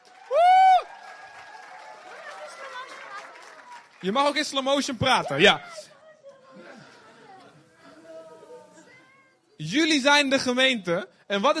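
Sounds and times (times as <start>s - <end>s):
audience applause: 0.0s - 5.0s
speech: 4.0s - 5.9s, 9.6s - 11.5s.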